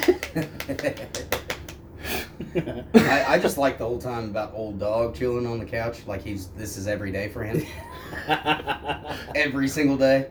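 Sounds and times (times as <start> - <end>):
golf clap: 0.0 - 1.8
laughter: 0.0 - 3.7, 7.5 - 9.7
speech: 0.4 - 1.2, 2.4 - 10.2.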